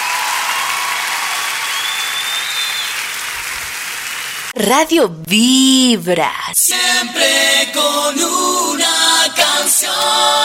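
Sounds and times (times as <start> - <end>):
audience applause: 0.0 - 4.6
speech: 4.7 - 10.4.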